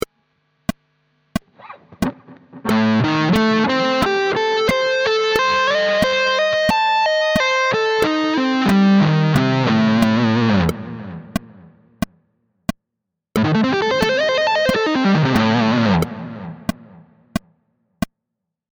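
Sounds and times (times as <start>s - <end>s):
Am7b5 chord pattern: 1.6s - 11.7s, 13.4s - 17.1s.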